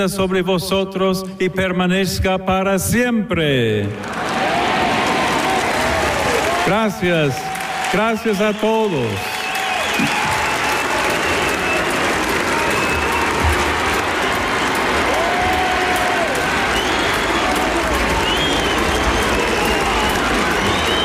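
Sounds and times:
speech: 0.0 - 4.4, 6.7 - 9.3
large crowd cheering and applauding: 3.9 - 21.0
whistles from crowd: 8.3 - 13.6, 16.6 - 21.0.

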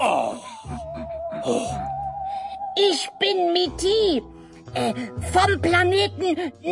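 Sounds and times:
low pulsing throb: 0.0 - 4.6
sci-fi UFO wavering electronic tone: 0.6 - 3.9
speech: 1.4 - 2.0, 2.8 - 6.7.

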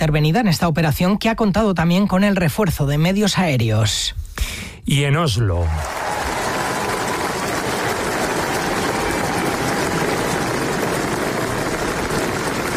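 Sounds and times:
speech: 0.0 - 6.4
crowd applauding and cheering new King of Norway at Royal Palace: 5.6 - 12.7.

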